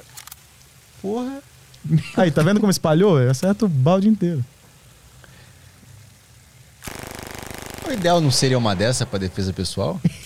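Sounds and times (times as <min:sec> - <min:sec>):
speech: 0:01.0 - 0:04.6, 0:07.9 - 0:10.2
automatic weapon firing a burst: 0:06.8 - 0:09.3
low rumble: 0:06.9 - 0:10.2
laughter: 0:10.0 - 0:10.2.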